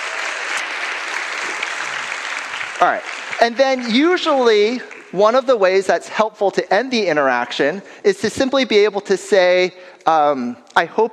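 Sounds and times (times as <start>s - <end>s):
audience round of applause: 0.0s - 5.6s
speech: 2.8s - 11.1s.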